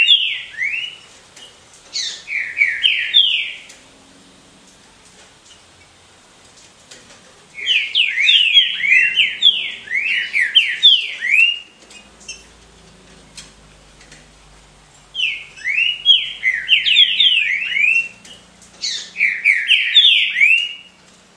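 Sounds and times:
Green-winged saltator singing: 0.0 - 1.1, 1.9 - 3.8, 7.5 - 12.6, 15.0 - 21.0.

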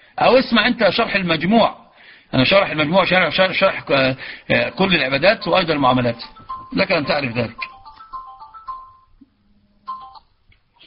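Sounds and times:
speech: 0.2 - 7.7
phone ringing with electronic tones: 4.5 - 9.2, 9.8 - 10.4.

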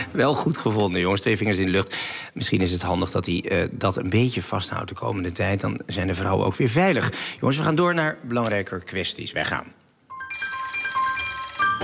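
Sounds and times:
speech: 0.1 - 9.8
outgoing telephone call ringing tone: 10.1 - 11.8.

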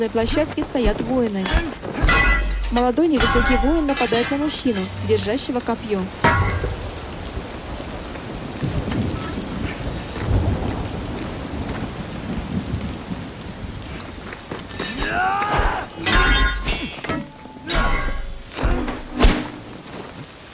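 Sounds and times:
speech: 0.0 - 1.9, 2.7 - 6.6
low rumbles of thunder: 0.0 - 14.8
steady rain on an overcast day over a warriors' training ground in Jing: 0.0 - 20.5.

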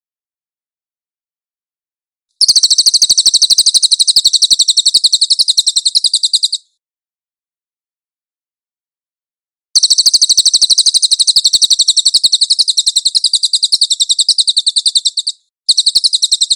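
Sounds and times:
cililin rattling trill: 2.4 - 6.7, 9.8 - 16.5.

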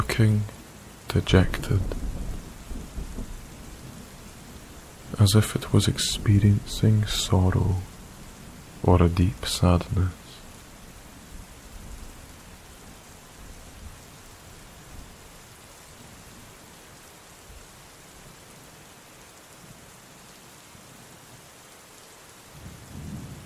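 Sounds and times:
steady hissing rain: 0.0 - 23.4
speech: 0.2 - 2.0, 5.2 - 7.9, 8.8 - 10.2
low rolling rumbles of thunder: 1.3 - 10.4, 22.6 - 23.4.

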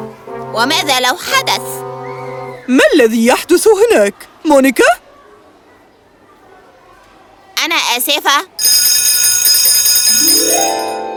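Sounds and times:
speech: 0.5 - 1.9, 2.7 - 5.0, 8.0 - 8.5
school bell ringing: 8.6 - 11.1.

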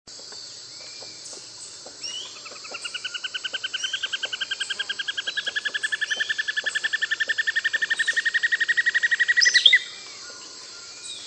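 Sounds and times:
Greyish Mourner Rhytipterna simplex frederici song: 0.6 - 11.2.

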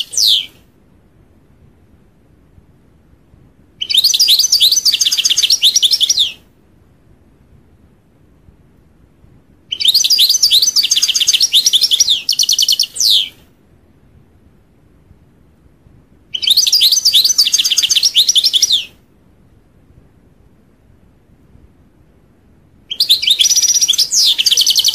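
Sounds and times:
European goldfinch song: 0.0 - 0.6, 3.8 - 6.4, 9.7 - 13.4, 16.3 - 19.0, 22.9 - 24.9.

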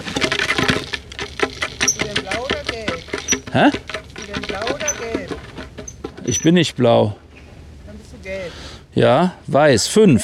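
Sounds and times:
small wall-mounted wheel being spun: 0.0 - 6.7
speech: 3.6 - 5.4, 6.3 - 7.2, 9.0 - 10.2.

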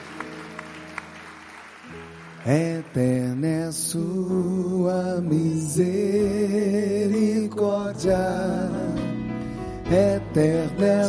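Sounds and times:
audience applauding: 0.0 - 4.0
sustained organ-like chords: 1.5 - 11.0
speech: 2.4 - 8.9, 9.9 - 11.0.

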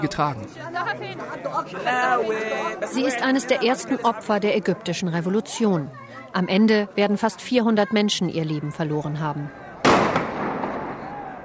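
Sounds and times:
speech: 0.0 - 9.7
tear gas grenades detonating during street protests in the Egyptian revolution: 9.8 - 11.1.

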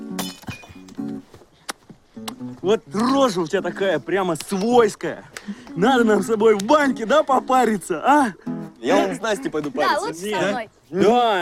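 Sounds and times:
glasses clinking in a brotherhood toast: 0.2 - 0.9
speech: 2.6 - 11.4.

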